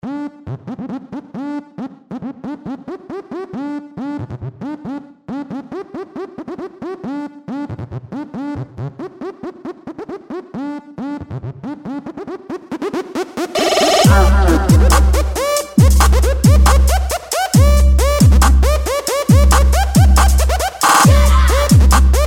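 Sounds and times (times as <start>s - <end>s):
music beat: 11.8s - 22.2s.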